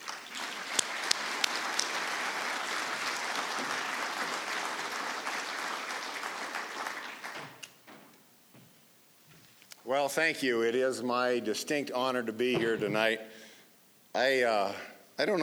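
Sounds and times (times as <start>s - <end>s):
audience applause welcoming a speaker to an evening event: 0.0s - 7.7s
speech: 10.0s - 13.4s, 14.1s - 15.4s.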